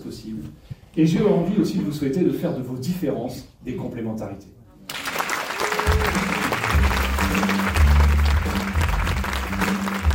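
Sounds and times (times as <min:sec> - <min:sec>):
speech: 0:00.1 - 0:04.6
audience applause after a show: 0:04.9 - 0:10.1.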